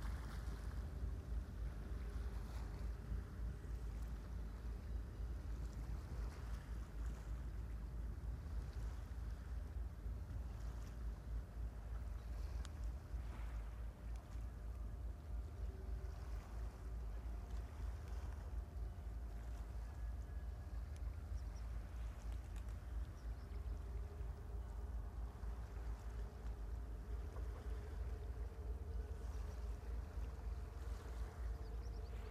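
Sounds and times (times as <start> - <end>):
River Tagus water in Lisbon Portugal: 0.0 - 32.3.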